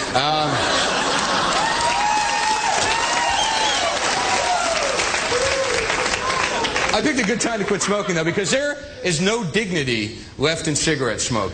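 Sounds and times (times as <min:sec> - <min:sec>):
scattered laughs and voices from the audience: 0:00.0 - 0:01.9, 0:06.3 - 0:09.1
crowd applause: 0:00.0 - 0:08.3
speech: 0:00.1 - 0:00.6, 0:07.0 - 0:11.5.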